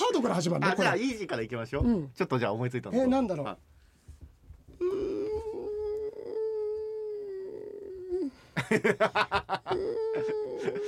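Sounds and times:
speech: 0.2s - 3.8s, 8.6s - 10.8s
person imitating a stray cat's yowl: 4.8s - 8.3s, 9.7s - 10.8s
laughter: 8.6s - 10.8s.

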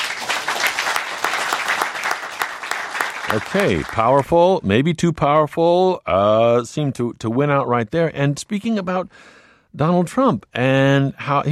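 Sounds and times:
crowd applauding: 0.0s - 4.4s
speech: 3.3s - 11.4s.

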